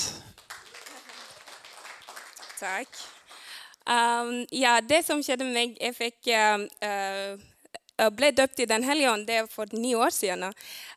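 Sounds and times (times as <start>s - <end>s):
audience applause: 0.0s - 3.6s
speech: 2.6s - 3.2s, 3.9s - 10.9s.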